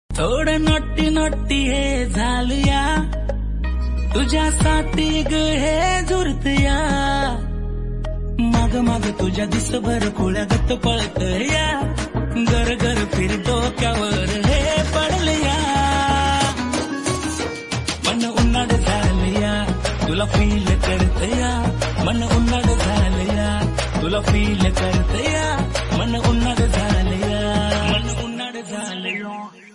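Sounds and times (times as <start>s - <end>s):
Marathi song: 0.2s - 29.7s.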